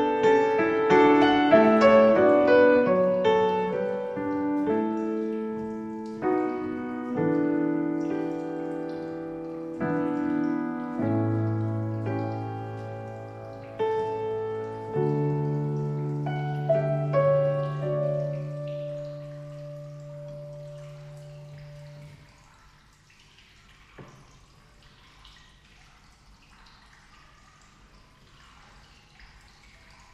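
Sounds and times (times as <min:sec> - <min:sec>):
piano improvisation: 0:00.0 - 0:22.2.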